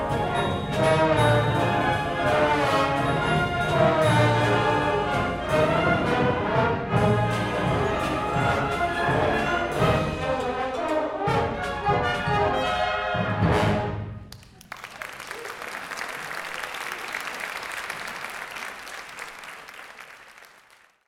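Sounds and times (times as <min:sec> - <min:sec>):
trombone rag: 0:00.0 - 0:14.1.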